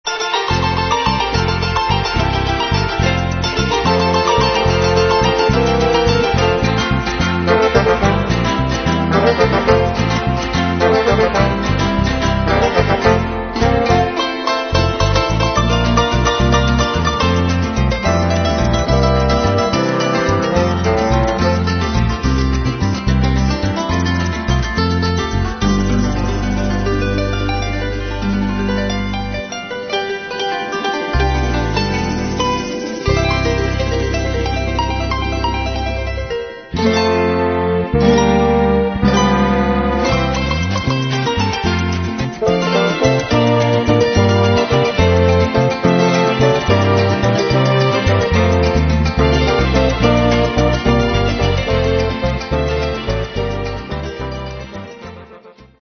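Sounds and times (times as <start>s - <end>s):
harp: 0.0s - 55.8s.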